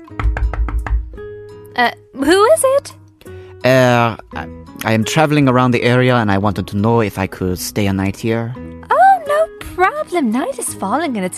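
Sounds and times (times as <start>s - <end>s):
knocking on a door: 0.0s - 1.2s
speech: 1.8s - 3.0s, 3.6s - 8.6s, 10.0s - 11.3s.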